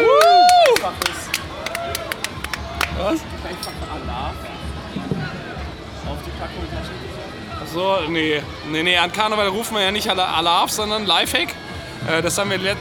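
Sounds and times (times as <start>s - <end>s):
small round of applause: 0.0s - 3.3s
speech: 7.7s - 12.7s.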